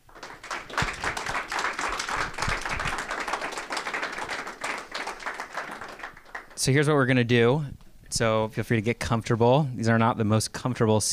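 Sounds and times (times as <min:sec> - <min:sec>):
audience applause: 0:00.0 - 0:06.8
speech: 0:06.6 - 0:11.1.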